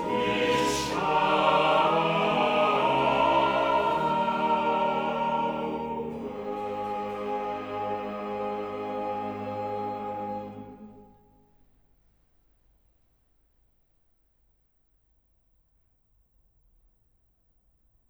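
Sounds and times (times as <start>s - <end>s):
choir singing: 0.0s - 11.4s.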